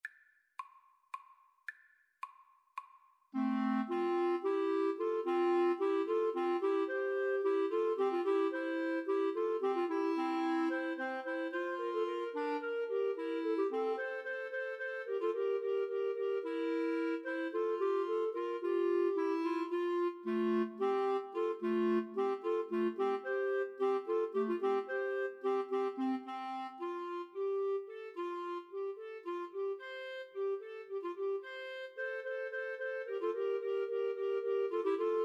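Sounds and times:
clarinet trio: 3.4s - 35.2s.

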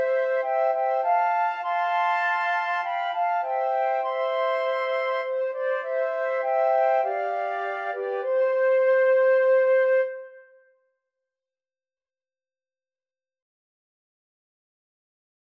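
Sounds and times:
flute trio playing: 0.0s - 10.6s.

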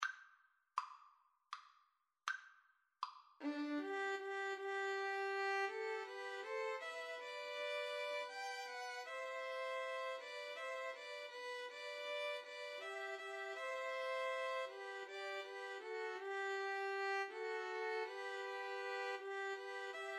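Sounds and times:
two violins and viola playing a folk song: 3.4s - 20.1s.

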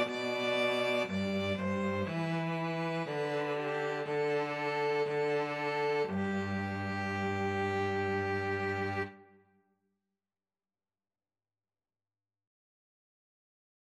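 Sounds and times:
string trio playing national anthem: 0.0s - 9.2s.

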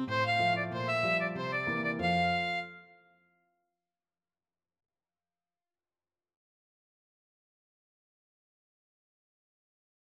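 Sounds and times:
saxophone: 0.0s - 3.0s.

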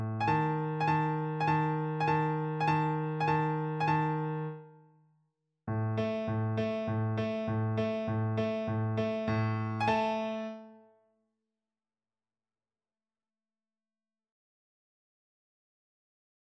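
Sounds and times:
piano: 0.0s - 4.8s, 5.7s - 11.0s.

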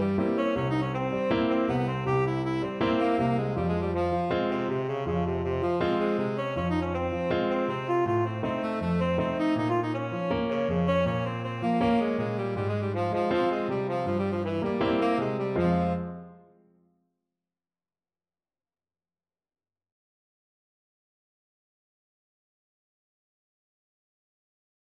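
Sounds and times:
tenor saxophone: 0.0s - 16.5s.

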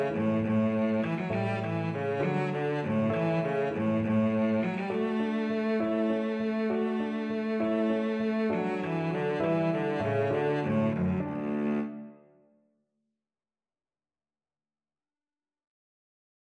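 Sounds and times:
cello playing a gigue in G major: 0.0s - 12.2s.

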